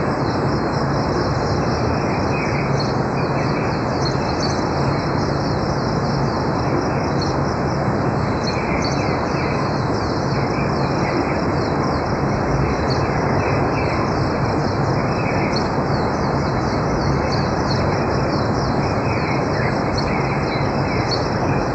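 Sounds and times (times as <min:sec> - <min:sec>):
songbirds singing: 0:00.0 - 0:21.7.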